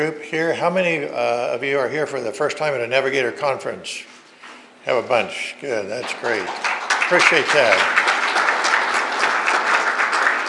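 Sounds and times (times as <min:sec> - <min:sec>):
speech: 0:00.0 - 0:04.2, 0:04.8 - 0:08.0
audience applause: 0:06.0 - 0:10.4.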